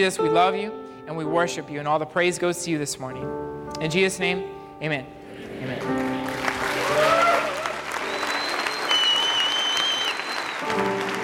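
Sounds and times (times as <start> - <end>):
speech: 0.0 - 6.0
audience applauding: 5.4 - 11.2.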